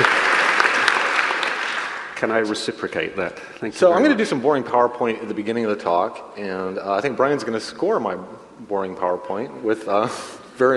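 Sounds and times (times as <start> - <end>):
person clapping: 0.0 - 2.2
speech: 2.2 - 10.7.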